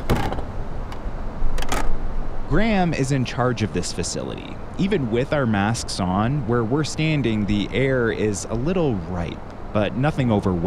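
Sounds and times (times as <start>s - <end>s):
wastewater autosampler low mechanical hum: 0.0s - 10.6s
speech: 2.5s - 10.6s.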